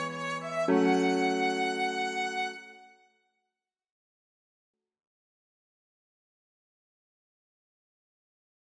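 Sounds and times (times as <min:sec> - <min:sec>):
piano: 0:00.0 - 0:03.0
violin: 0:00.0 - 0:03.1.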